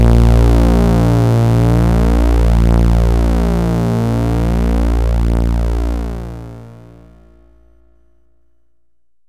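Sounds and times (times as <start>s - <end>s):
three-VCO velocity FM synthesizer solo: 0.0s - 7.7s.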